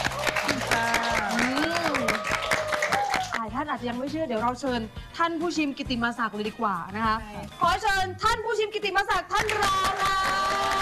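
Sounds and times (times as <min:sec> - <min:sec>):
audience applause: 0:00.0 - 0:03.4, 0:09.5 - 0:10.7
speech: 0:03.8 - 0:10.7.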